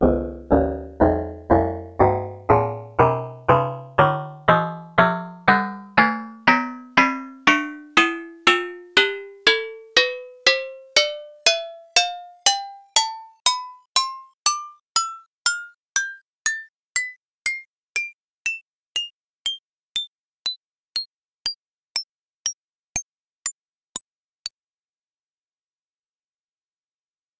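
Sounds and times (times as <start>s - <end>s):
agogo bells playing a scale: 0.0s - 20.1s.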